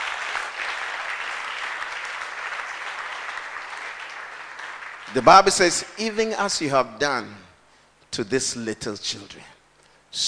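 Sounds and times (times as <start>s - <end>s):
audience clapping: 0.0s - 5.9s
speech: 5.1s - 7.5s, 8.1s - 10.2s.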